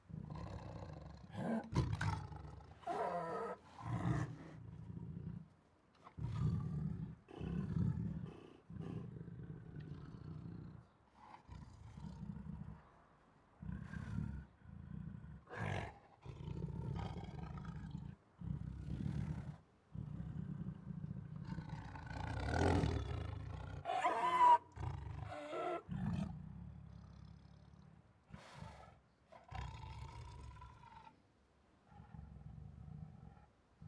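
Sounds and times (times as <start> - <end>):
Siberian tiger protective growls: 0.0 - 12.9, 13.6 - 31.2, 31.8 - 33.8
Siberian tiger roaring: 0.1 - 5.1, 6.1 - 10.4, 13.6 - 27.4, 28.3 - 31.2.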